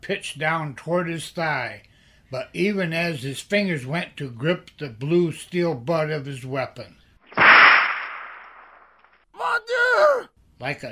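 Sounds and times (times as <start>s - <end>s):
speech: 0.0s - 7.0s, 10.2s - 10.9s
rawhide whip lash cracking: 7.3s - 8.8s.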